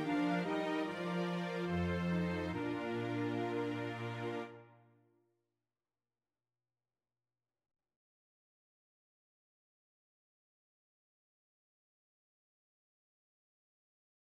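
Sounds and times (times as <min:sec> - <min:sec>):
alto choir part practice singing: 0:00.0 - 0:04.6.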